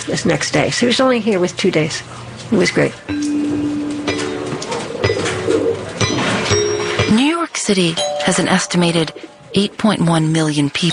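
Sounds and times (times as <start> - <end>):
speech: 0.0 - 3.4, 7.7 - 10.9
pigeons cooing: 3.7 - 6.7.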